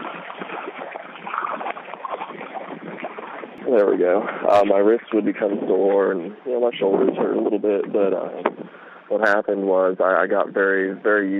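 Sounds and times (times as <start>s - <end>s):
paddle strokes as someone paddles a loaded boat: 0.0s - 6.4s
water washing and sloshing around a boat: 0.0s - 9.1s
speech: 3.7s - 11.3s.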